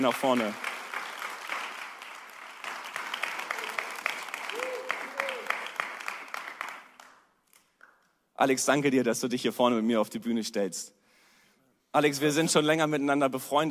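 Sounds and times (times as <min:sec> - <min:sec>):
speech: 0:00.0 - 0:00.7, 0:08.4 - 0:11.0, 0:11.9 - 0:13.6
audience applause: 0:00.0 - 0:07.2.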